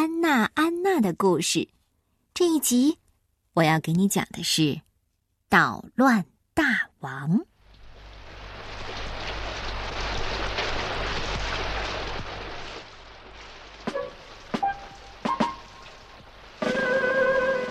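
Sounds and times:
speech: 0.4 - 1.8, 2.4 - 3.0, 3.6 - 4.9, 5.5 - 7.5
rain falling outside: 7.4 - 17.6.

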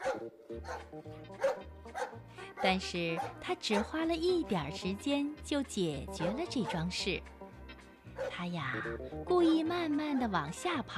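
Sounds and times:
police dog barking: 0.0 - 4.0, 6.2 - 6.8, 8.2 - 8.4
speech: 0.2 - 7.4, 8.2 - 10.9.

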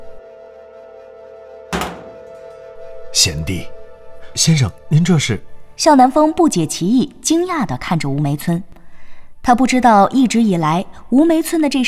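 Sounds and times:
temple main hall door pulled tightly shut: 1.8 - 2.6
speech: 3.1 - 3.8, 4.4 - 8.7, 9.4 - 11.8.

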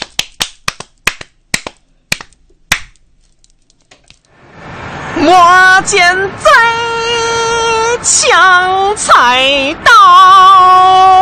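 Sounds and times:
sparse sharp handclaps: 0.0 - 2.9
speech: 5.2 - 7.3, 7.9 - 11.2.

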